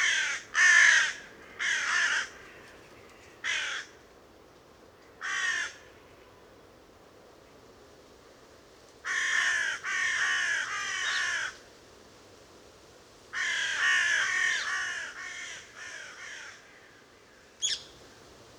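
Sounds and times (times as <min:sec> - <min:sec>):
Carrion crow (Corvus corone) cawing harshly: 0:00.0 - 0:02.6, 0:03.4 - 0:04.0, 0:05.2 - 0:05.9, 0:09.1 - 0:11.6, 0:13.4 - 0:16.8.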